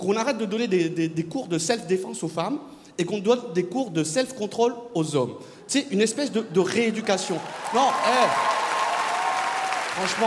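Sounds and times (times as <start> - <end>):
speech: 0.0 - 8.6, 10.0 - 10.2
audience applause: 7.1 - 10.2.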